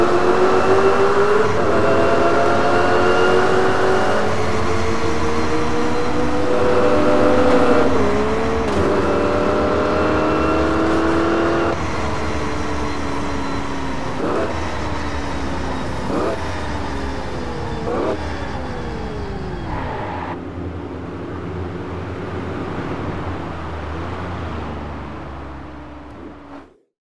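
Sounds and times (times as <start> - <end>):
Ford GT car: 0.0 - 26.8.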